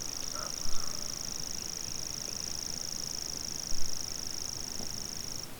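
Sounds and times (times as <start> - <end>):
grasshopper warbler bird sound: 0.0 - 5.5.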